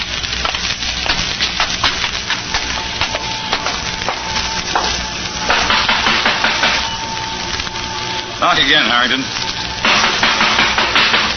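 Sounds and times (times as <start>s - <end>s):
vacuum cleaner running behind a door: 0.0s - 11.3s
speech: 8.5s - 9.5s.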